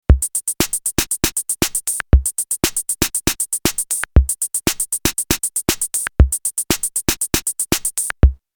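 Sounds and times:
EMW T-Drum 70 drum kit: 0:00.0 - 0:08.4.

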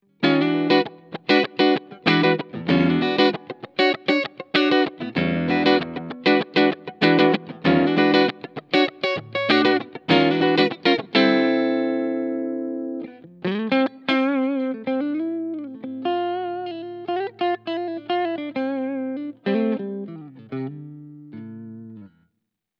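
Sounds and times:
Schecter C 1 Exotic guitar on neck pickup split clean: 0:00.0 - 0:22.3.

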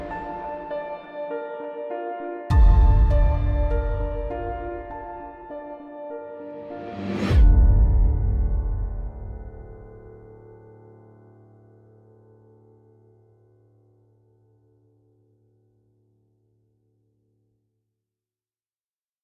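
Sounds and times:
orchestral music: 0:00.0 - 0:01.4, 0:02.5 - 0:10.1.

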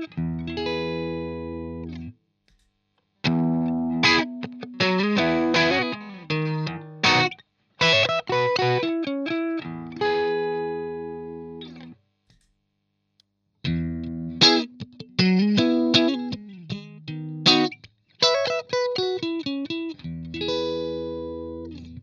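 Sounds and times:
screamer guitar riff: 0:00.0 - 0:02.1, 0:03.2 - 0:11.9, 0:13.6 - 0:22.0.

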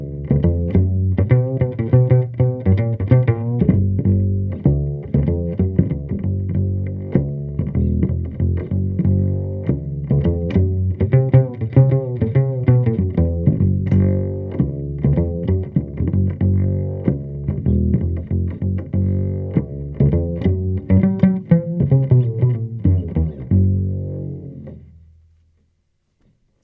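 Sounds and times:
double bass through amplifier: 0:00.0 - 0:25.9.

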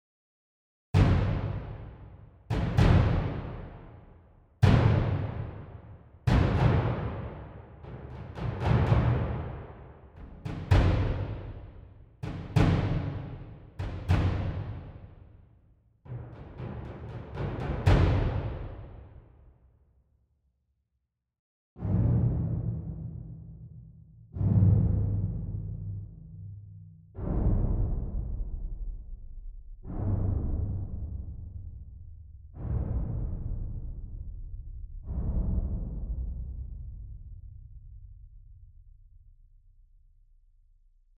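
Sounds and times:
percussion: 0:01.0 - 0:19.9, 0:21.8 - 0:40.2.

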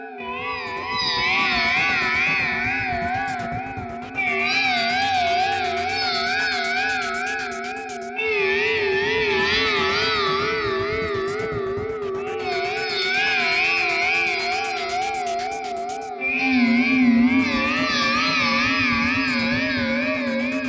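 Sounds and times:
guitar through delay reverb pedal: 0:00.3 - 0:20.6.

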